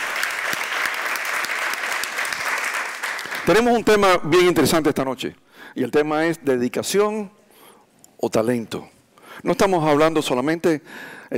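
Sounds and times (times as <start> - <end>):
applause: 0.0 - 4.0
speech: 3.5 - 7.4, 8.2 - 11.3.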